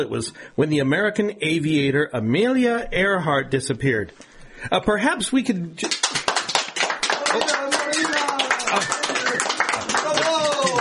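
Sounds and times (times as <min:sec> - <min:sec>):
speech: 0:00.0 - 0:06.1, 0:07.3 - 0:07.8
loud sustained applause from a large crowd in an auditorium: 0:05.8 - 0:10.7.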